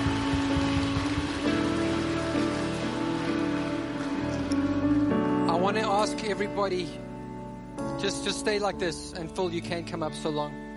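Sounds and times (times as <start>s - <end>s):
audience applause: 0.0s - 5.2s
speech: 5.7s - 7.0s, 8.0s - 10.6s.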